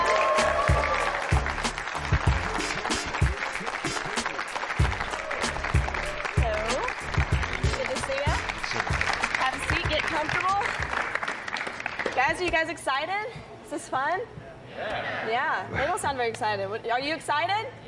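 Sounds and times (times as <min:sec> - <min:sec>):
high school students clapping to welcome a defensive lineman: 0:00.0 - 0:12.3
speech: 0:12.6 - 0:17.8.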